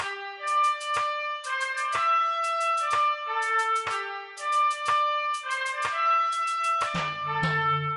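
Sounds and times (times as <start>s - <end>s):
4th of July holiday music: 0.0s - 7.9s.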